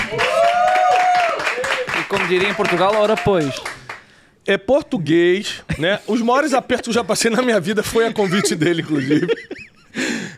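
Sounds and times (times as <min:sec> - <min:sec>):
audience applause: 0:00.0 - 0:04.0
speech: 0:02.3 - 0:03.8, 0:04.4 - 0:10.2
laughter: 0:05.7 - 0:10.0.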